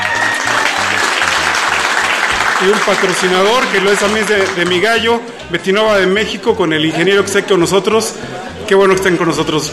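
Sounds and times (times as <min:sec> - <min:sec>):
audience applause: 0:00.0 - 0:05.1
speech: 0:02.6 - 0:09.7.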